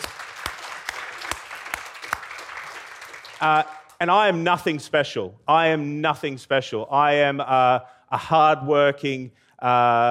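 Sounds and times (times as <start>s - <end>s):
crowd applause: 0.0s - 4.0s
speech: 3.4s - 10.0s.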